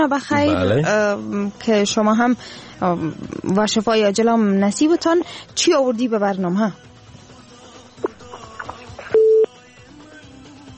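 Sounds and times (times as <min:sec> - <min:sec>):
speech: 0:00.0 - 0:06.9
steady mid-pitched phone tone after a call disconnects: 0:09.0 - 0:09.5.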